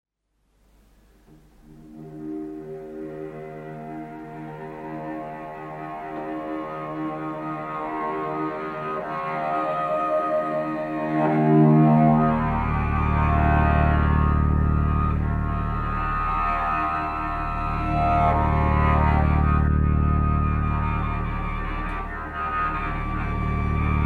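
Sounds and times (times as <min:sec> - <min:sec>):
cello drone: 0:01.2 - 0:24.0.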